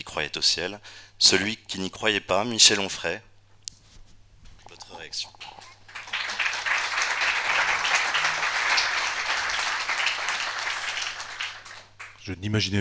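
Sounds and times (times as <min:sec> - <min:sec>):
speech: 0:00.2 - 0:03.3, 0:05.0 - 0:05.6, 0:12.2 - 0:12.7
audience applause: 0:05.6 - 0:12.2.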